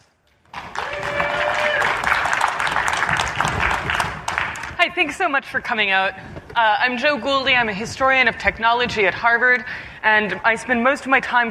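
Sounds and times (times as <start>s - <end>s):
audience applause welcoming a historian of technology: 0.5s - 4.8s
speech: 5.0s - 11.4s.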